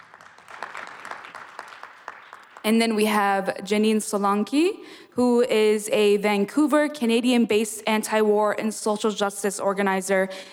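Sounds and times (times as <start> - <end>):
audience clapping: 0.0 - 2.9
speech: 2.6 - 10.5.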